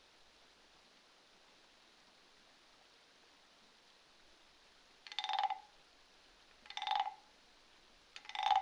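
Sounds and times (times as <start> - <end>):
quiet hiss: 0.0 - 8.6
frogs croaking: 5.0 - 5.8, 6.6 - 7.3, 8.2 - 8.6.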